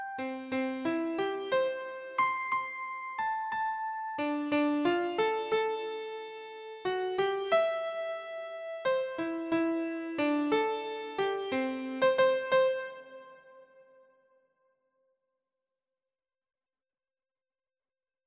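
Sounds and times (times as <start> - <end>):
keyboard melody: 0.0 - 13.8.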